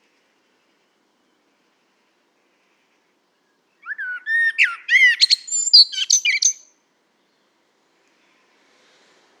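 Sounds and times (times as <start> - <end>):
Common blackbird singing: 3.8 - 6.7.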